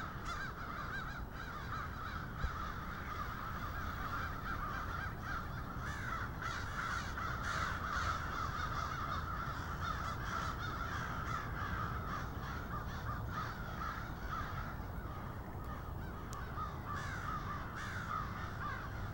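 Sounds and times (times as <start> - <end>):
crow flock cawing in Cincinnati: 0.0 - 19.1.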